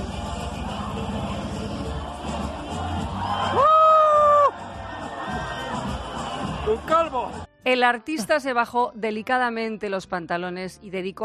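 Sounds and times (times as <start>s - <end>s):
enthusiastic audience cheering and whooping at a comedic performance: 2.4s - 6.7s
speech: 7.1s - 11.2s.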